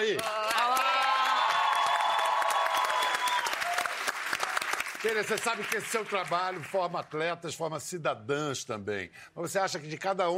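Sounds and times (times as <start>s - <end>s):
audience applause: 0.0s - 7.0s
voices cheering: 0.2s - 4.6s
speech: 5.0s - 10.3s.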